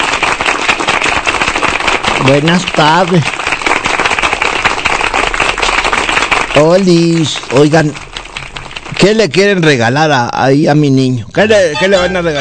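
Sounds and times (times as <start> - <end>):
audience applause: 0.0 - 9.6
speech: 2.3 - 3.5, 6.6 - 8.0, 8.9 - 12.3.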